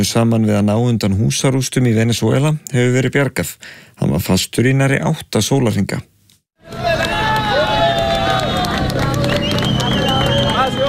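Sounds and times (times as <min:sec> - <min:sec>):
speech: 0:00.0 - 0:06.1
crowd cheering at a rescue from earthquake rubble in Venezuela: 0:06.6 - 0:10.8
excited shouts: 0:06.6 - 0:10.8
scattered claps: 0:06.7 - 0:10.8.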